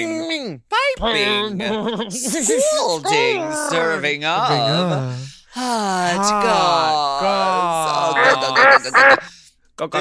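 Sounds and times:
speech: 0.0 - 9.9
laughter: 1.2 - 4.8, 7.8 - 9.3
ducks or geese quacking: 8.2 - 9.3.

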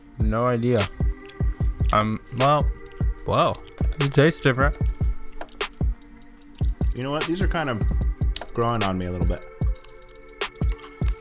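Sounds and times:
speech: 0.3 - 1.0, 1.9 - 5.0, 7.0 - 8.0, 8.6 - 9.5
person chewing a German Snickers bar: 0.9 - 7.0, 7.9 - 8.6, 9.3 - 11.2.

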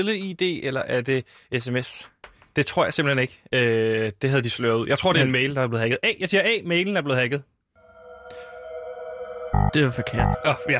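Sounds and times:
speech: 0.0 - 7.5, 9.5 - 10.7
hacker sound effect buzzy synthetic tone: 7.8 - 10.7.

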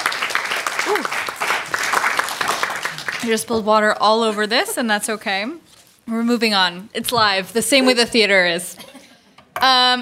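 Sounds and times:
crowd applause: 0.0 - 3.3
short whoop: 0.8 - 1.2
speech: 0.9 - 1.3, 3.2 - 8.9, 9.6 - 10.0.

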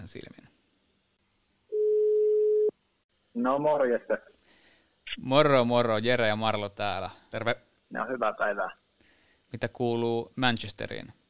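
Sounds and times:
speech: 0.1 - 0.5, 3.4 - 4.3, 5.2 - 8.8, 9.5 - 11.2
telephone ringback tone: 1.7 - 2.7.

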